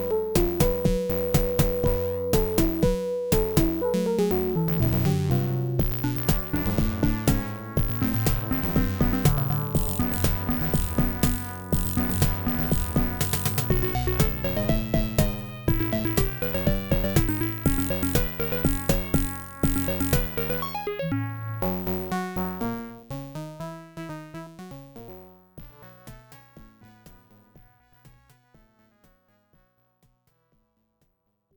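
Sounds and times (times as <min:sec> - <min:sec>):
level background music: 0:00.0 - 0:23.1.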